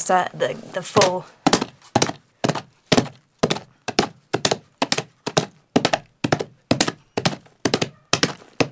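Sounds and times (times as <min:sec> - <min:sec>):
speech: 0:00.1 - 0:01.4
Foley galloping horse hoofbeats as hollow wooden thunks: 0:00.9 - 0:08.7.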